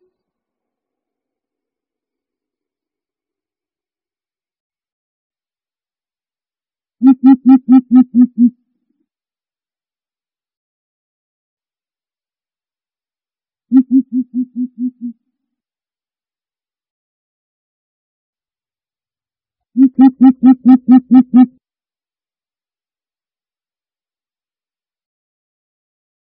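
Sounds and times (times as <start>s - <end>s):
greater coucal deep hollow hoots: 7.0s - 8.5s, 13.7s - 15.2s, 19.8s - 21.5s.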